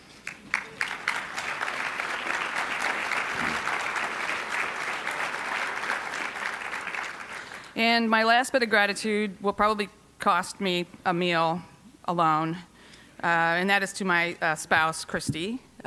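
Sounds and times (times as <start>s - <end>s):
audience applause: 0.2s - 7.7s
speech: 7.8s - 15.8s.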